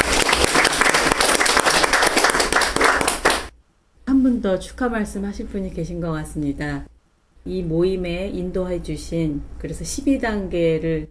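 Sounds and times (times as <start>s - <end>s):
applause: 0.0s - 3.5s
speech: 4.5s - 11.0s.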